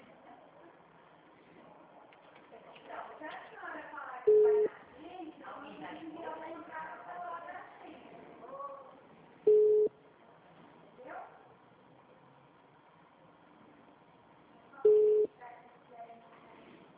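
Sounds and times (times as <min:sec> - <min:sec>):
people talking: 0:01.6 - 0:09.0, 0:14.8 - 0:16.8
two short identical electronic telephone ringback beeps while placing a conference call: 0:09.5 - 0:09.9.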